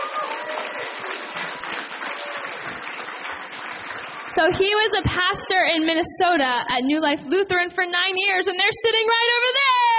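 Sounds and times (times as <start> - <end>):
audience applause: 0.0 - 5.5
speech: 4.4 - 9.8.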